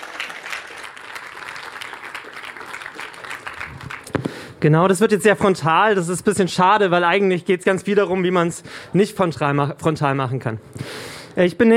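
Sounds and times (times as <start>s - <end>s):
audience applause for a talk: 0.0s - 4.4s
speech: 4.6s - 11.7s.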